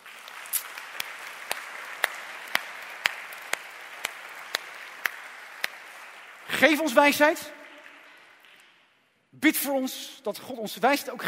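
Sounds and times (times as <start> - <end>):
audience applauding: 0.0 - 8.9
speech: 6.6 - 7.6, 9.4 - 11.2.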